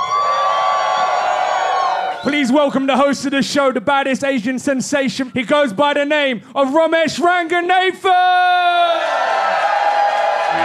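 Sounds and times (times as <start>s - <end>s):
live audience screaming and cheering: 0.0s - 2.6s, 8.8s - 10.6s
speech: 2.2s - 9.0s.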